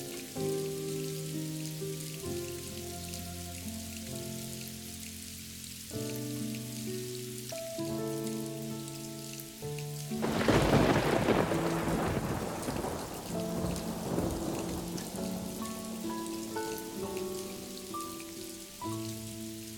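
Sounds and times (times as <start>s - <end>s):
rain on a lake: 0.0s - 19.7s
soft guitar chords: 0.0s - 19.7s
thunder rumbling: 10.2s - 16.1s.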